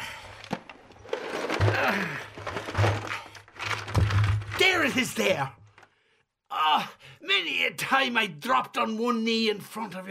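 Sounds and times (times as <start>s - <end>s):
kitchen drawer contents dumped onto floor: 0.4s - 4.8s
speech: 4.8s - 5.6s, 6.8s - 10.0s.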